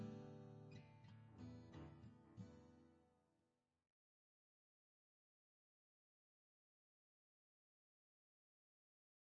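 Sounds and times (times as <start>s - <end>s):
acoustic lofi music: 0.0s - 3.0s.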